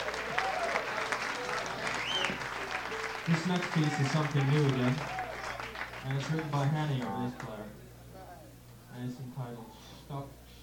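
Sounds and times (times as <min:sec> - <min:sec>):
crowd applause: 0:00.0 - 0:07.6
whistle-like tones: 0:01.9 - 0:02.5
speech: 0:03.3 - 0:05.2, 0:06.0 - 0:07.8, 0:09.0 - 0:10.4.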